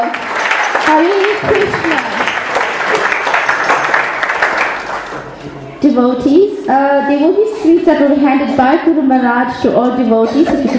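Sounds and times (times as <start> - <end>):
round of applause: 0.0 - 5.6
speech: 0.9 - 2.0, 5.9 - 10.7.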